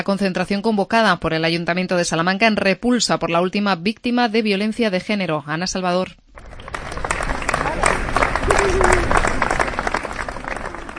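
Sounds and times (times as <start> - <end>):
speech: 0.0 - 6.5
crowd applause in memory of a victim: 6.4 - 10.9.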